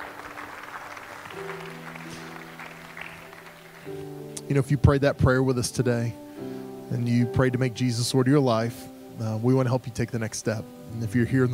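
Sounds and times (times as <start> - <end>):
crowd applause: 0.0 - 4.1
speech: 1.3 - 1.8, 3.9 - 6.2, 6.9 - 11.5.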